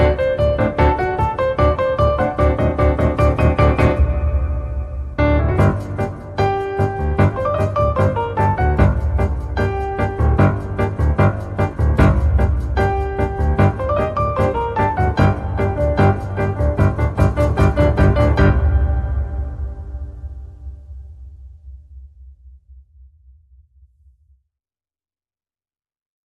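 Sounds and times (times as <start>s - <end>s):
solo piano: 0.0s - 20.6s.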